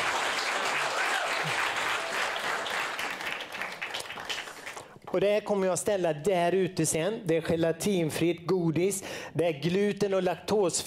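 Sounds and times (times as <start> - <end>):
crowd applauding: 0.0 - 5.0
speech: 5.2 - 10.8.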